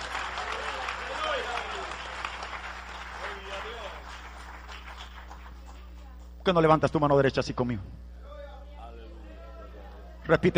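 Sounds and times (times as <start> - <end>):
audience applause: 0.0 - 6.1
speech: 6.5 - 8.1, 10.3 - 10.5.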